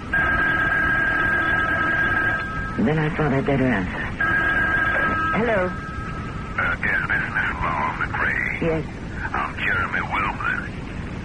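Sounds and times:
telephone ringing with high electronic tone: 0.0 - 7.0
speech: 2.8 - 4.2, 5.4 - 5.9, 6.6 - 10.8.

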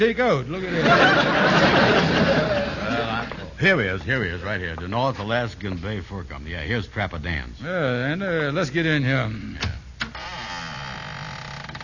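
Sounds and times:
speech: 0.0 - 2.0, 3.6 - 9.8
laughter: 0.6 - 3.6
creaking door opening: 9.6 - 11.8.

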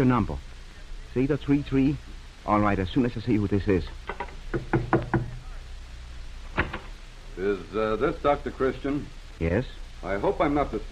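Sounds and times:
speech: 0.0 - 0.5, 1.2 - 5.0, 7.4 - 10.9
knocking on a door: 4.1 - 5.4.

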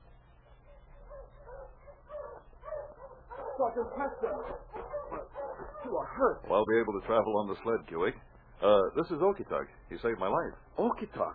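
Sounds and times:
sled dog team barking and yipping: 0.4 - 6.2
speech: 3.6 - 11.3.

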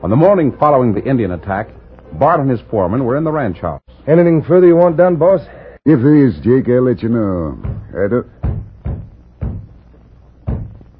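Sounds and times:
speech: 0.0 - 8.4
weak knocking on a door: 7.6 - 9.8, 10.5 - 10.9.

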